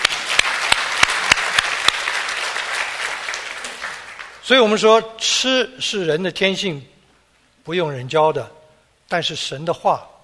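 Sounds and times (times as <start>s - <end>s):
audience applause: 0.0s - 4.4s
speech: 4.5s - 6.9s, 7.7s - 10.1s.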